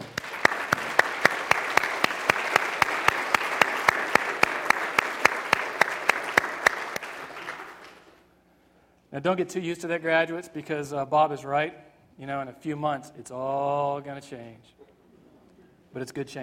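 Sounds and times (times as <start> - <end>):
large crowd applauding graduates: 0.0 - 8.2
speech: 9.2 - 14.8, 15.9 - 16.4.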